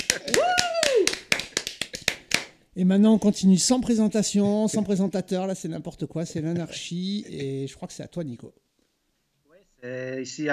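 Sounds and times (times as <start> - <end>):
crowd clapping after a show finale: 0.0 - 2.6
whooping cheer: 0.1 - 1.3
speech: 2.8 - 8.6, 9.8 - 10.5.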